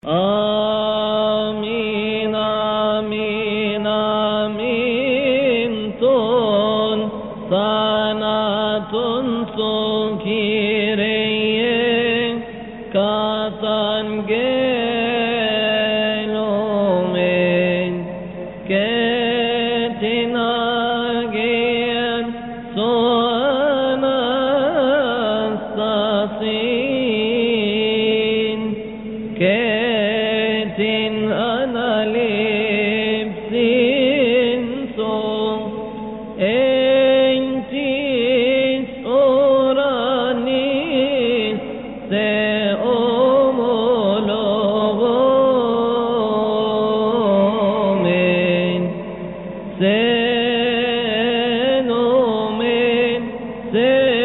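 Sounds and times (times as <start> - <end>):
Coptic chant: 0.0 - 54.2.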